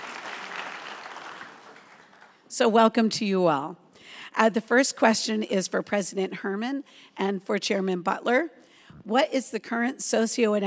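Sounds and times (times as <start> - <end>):
audience applause: 0.0 - 2.4
speech: 2.5 - 10.6.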